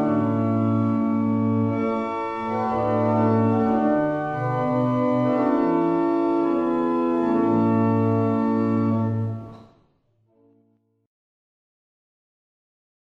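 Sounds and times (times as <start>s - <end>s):
barrel organs playing: 0.0s - 9.5s.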